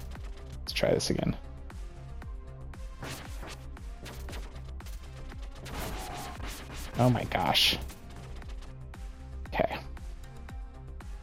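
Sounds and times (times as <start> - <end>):
video game music: 0.0 - 11.2
speech: 0.8 - 1.5, 7.0 - 8.0
rapid gunfire from an enemy shooter in a video game: 3.0 - 8.7.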